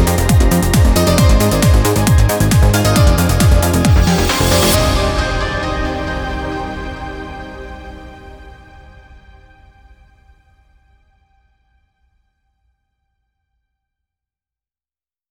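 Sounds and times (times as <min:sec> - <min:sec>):
trance ringtone: 0:00.0 - 0:07.6.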